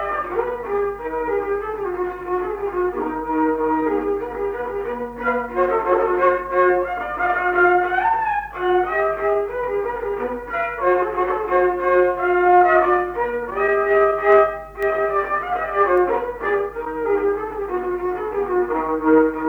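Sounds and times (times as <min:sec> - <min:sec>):
fiddle playing a folk polka: 0:00.0 - 0:19.4.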